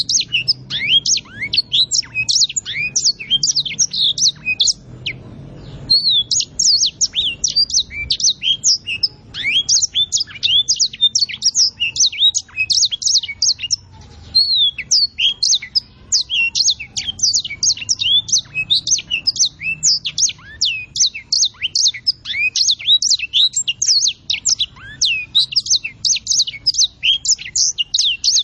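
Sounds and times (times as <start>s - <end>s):
songbird tutor song for training songbirds: 0.0s - 28.4s.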